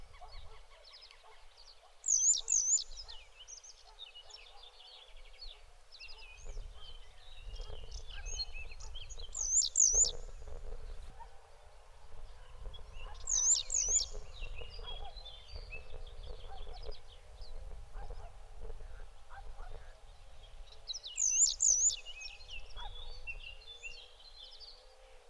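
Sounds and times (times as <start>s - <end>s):
other birds chirping: 0.0s - 25.2s
bird call: 2.0s - 3.2s, 7.7s - 10.3s, 13.0s - 16.9s, 21.2s - 23.0s.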